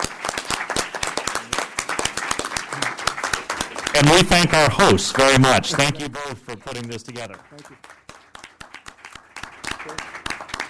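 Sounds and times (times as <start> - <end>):
audience applause thanking a discussion panel: 0.0 - 10.6
speech: 4.0 - 7.9.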